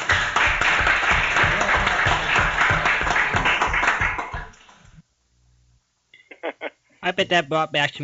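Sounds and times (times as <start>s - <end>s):
audience applause in archival recording: 0.0s - 4.8s
speech: 7.2s - 8.0s.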